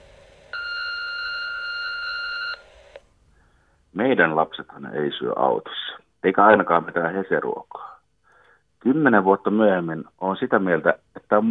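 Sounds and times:
answering machine beep tone: 0.5s - 2.7s
speech: 4.0s - 7.9s, 8.8s - 11.4s.

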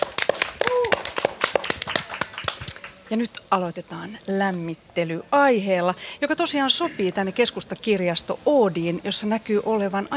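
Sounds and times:
audience applause at the start of a panel discussion in the Oodi central library: 0.0s - 3.0s
speech: 3.1s - 10.1s.

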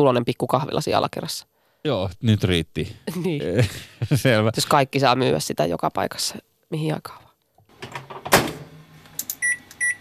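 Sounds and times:
speech: 0.0s - 7.2s
laughter: 3.1s - 4.6s
unbranded microwave oven: 7.7s - 9.9s.

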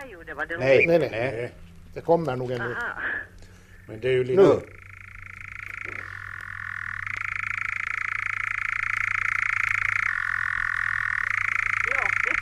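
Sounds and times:
faint low hum: 0.0s - 12.4s
speech: 0.2s - 3.0s, 3.9s - 4.8s
European nightjar churring song: 4.6s - 12.4s.

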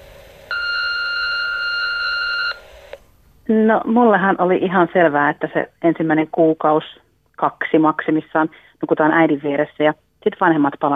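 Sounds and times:
answering machine beep: 0.5s - 3.0s
speech: 3.5s - 10.9s.

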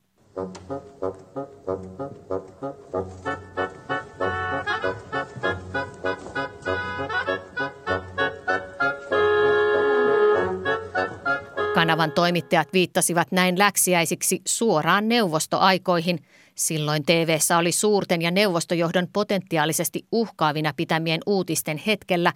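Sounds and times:
speech: 0.4s - 1.2s, 12.0s - 22.3s
classical ballet orchestral music excerpt: 0.4s - 12.5s.

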